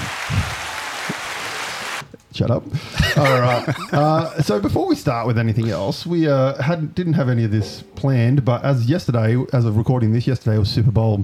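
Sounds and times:
crowd applause sound effect: 0:00.0 - 0:02.0
speech: 0:02.4 - 0:11.2
laughter: 0:03.0 - 0:04.8.

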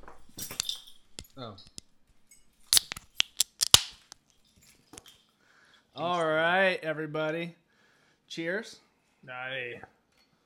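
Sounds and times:
beer bottles being opened with bottle openers: 0:00.0 - 0:02.0, 0:02.6 - 0:04.3
speech: 0:01.4 - 0:01.8, 0:06.0 - 0:07.6, 0:08.3 - 0:10.0.

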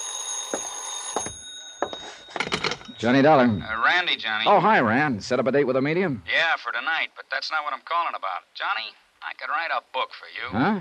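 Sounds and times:
telephone bell ringing: 0:00.0 - 0:03.6
speech: 0:03.0 - 0:10.7.

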